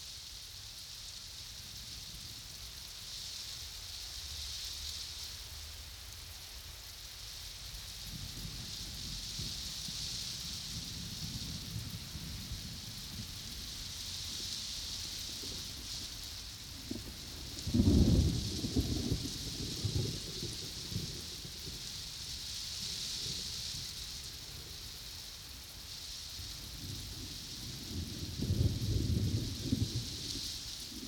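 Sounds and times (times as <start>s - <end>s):
thunderstorm: 8.0s - 14.4s, 15.0s - 24.0s, 26.7s - 31.0s.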